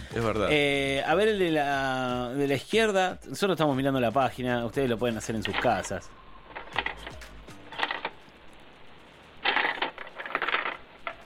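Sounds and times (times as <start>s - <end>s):
speech: 0.2s - 6.2s
cash register ringing: 5.4s - 8.2s, 9.4s - 11.2s.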